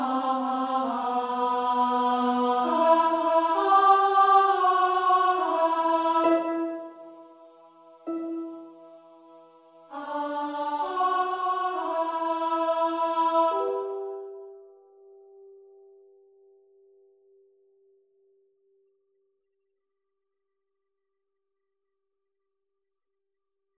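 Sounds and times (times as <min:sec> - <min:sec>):
soprano singing a lament: 0:00.0 - 0:06.9, 0:09.9 - 0:14.3.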